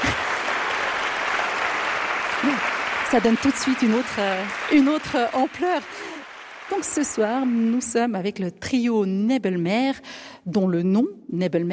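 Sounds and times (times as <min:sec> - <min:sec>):
concert audience applauding a trio: 0:00.0 - 0:08.3
speech: 0:02.4 - 0:06.1, 0:06.7 - 0:11.7.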